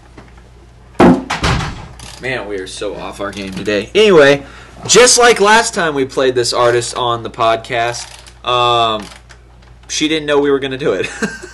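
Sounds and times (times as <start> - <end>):
door being shut: 1.0 - 2.1
speech: 2.2 - 9.2, 9.9 - 11.5.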